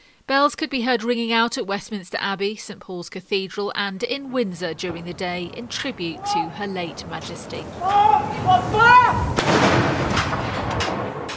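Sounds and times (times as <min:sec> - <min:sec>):
speech: 0:00.3 - 0:10.4
raised voice: 0:07.6 - 0:09.4
cannon fire from a gun salute: 0:09.2 - 0:11.3.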